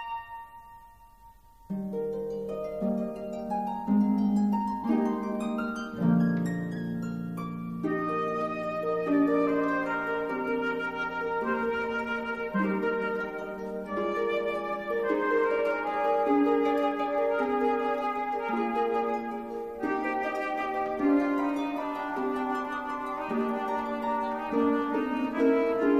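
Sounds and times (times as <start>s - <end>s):
flute: 0.0s - 1.6s, 7.8s - 25.9s
harp: 0.0s - 25.9s.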